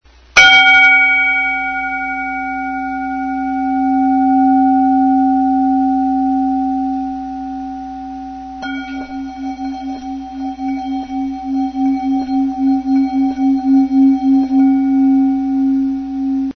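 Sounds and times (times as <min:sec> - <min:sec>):
bowl: 0:00.1 - 0:16.5.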